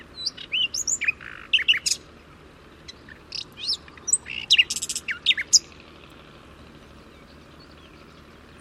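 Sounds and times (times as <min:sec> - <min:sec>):
bird singing high-pitched song of chirps, trill and whistles: 0:00.0 - 0:02.1, 0:02.8 - 0:05.8, 0:07.0 - 0:08.5.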